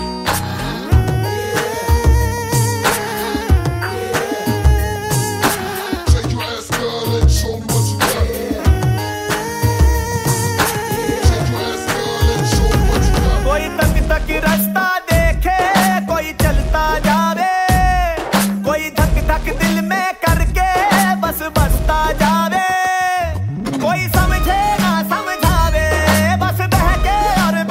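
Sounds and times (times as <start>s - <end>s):
new Hindi ringtone: 0.0s - 27.6s.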